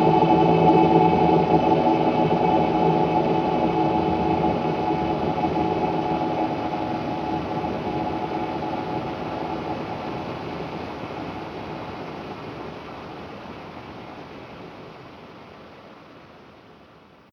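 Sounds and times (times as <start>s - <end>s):
choir singing: 0.0s - 10.2s.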